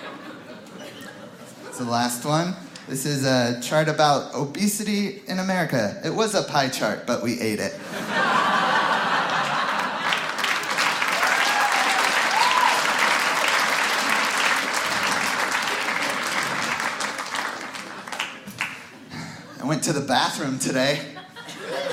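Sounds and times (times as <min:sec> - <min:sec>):
laughter: 0:00.0 - 0:01.9, 0:07.7 - 0:11.6, 0:20.8 - 0:21.9
speech: 0:01.8 - 0:08.3, 0:19.8 - 0:21.2
audience applause: 0:08.9 - 0:19.0.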